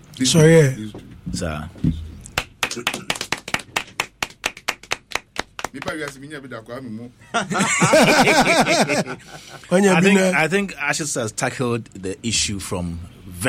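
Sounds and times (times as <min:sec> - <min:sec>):
speech: 0:00.2 - 0:02.0, 0:02.8 - 0:03.0, 0:05.7 - 0:13.4
steady rhythmic clapping of hands: 0:02.2 - 0:06.3
laughter-like vocal sounds: 0:07.2 - 0:09.7.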